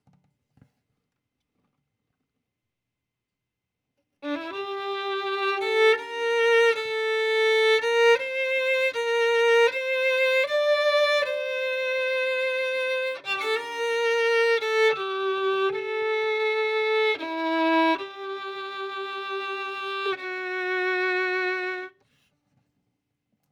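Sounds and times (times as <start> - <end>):
violin: 4.2 - 22.0.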